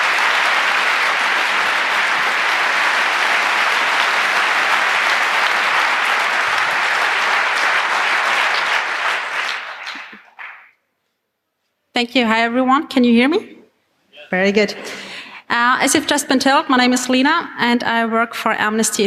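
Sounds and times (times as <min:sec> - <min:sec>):
large indoor audience applause: 0:00.0 - 0:10.7
speech: 0:12.0 - 0:13.5, 0:14.3 - 0:19.0.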